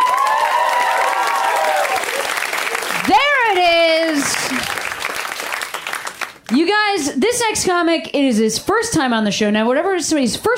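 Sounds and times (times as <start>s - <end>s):
crowd clapping loudly: 0.0s - 6.7s
speech: 6.5s - 10.5s.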